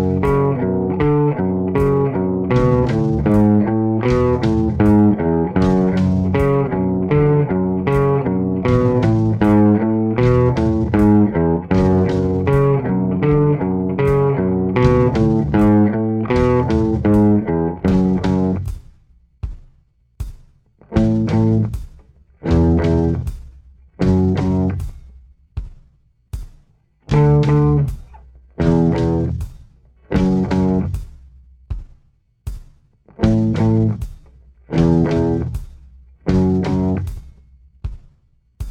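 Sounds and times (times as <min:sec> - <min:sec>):
slow guitar riff: 0:00.0 - 0:18.7, 0:20.9 - 0:21.7, 0:22.4 - 0:23.3, 0:24.0 - 0:24.8, 0:27.1 - 0:28.0, 0:28.6 - 0:29.4, 0:30.1 - 0:31.0, 0:33.2 - 0:34.0, 0:34.7 - 0:35.6, 0:36.3 - 0:37.1.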